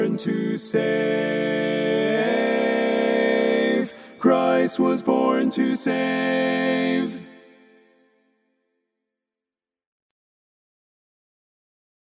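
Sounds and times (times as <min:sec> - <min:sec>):
baritone Christmas carol: 0:00.0 - 0:08.0.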